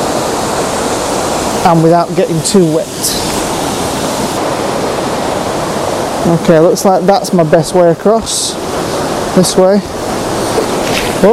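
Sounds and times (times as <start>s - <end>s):
fast-flowing shallow river rushing over rocks: 0.0s - 11.3s
speech: 1.6s - 3.4s, 6.2s - 10.1s.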